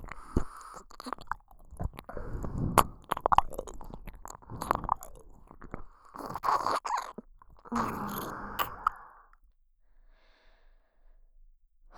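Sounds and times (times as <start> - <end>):
ear licking: 0.0 - 9.2.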